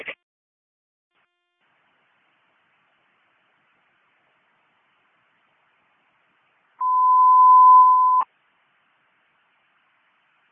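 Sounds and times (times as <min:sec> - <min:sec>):
fire dispatch alert tone: 0:06.8 - 0:08.2.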